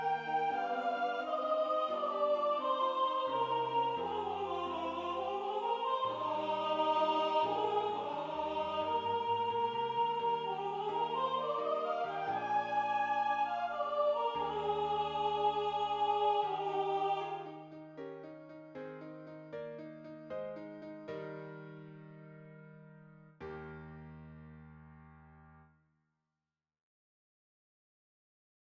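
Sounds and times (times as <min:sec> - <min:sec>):
soprano singing: 0:00.0 - 0:17.8.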